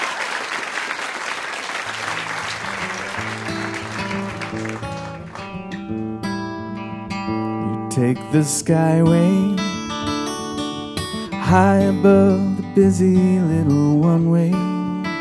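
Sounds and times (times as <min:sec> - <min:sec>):
audience applause: 0:00.0 - 0:06.0
instrumental music: 0:01.9 - 0:15.1
speech: 0:08.0 - 0:09.6, 0:11.5 - 0:14.7.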